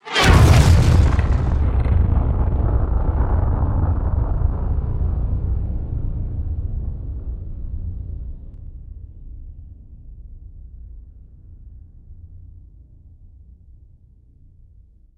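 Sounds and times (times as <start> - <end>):
huge explosion: 0.0 - 8.2.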